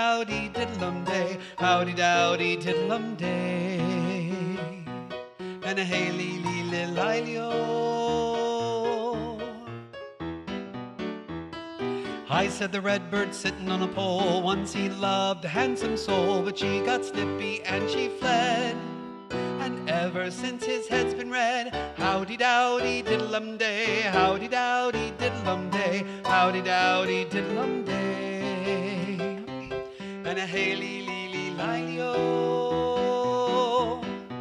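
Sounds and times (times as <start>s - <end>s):
baritone voice: 0.0s - 9.9s, 11.9s - 34.2s.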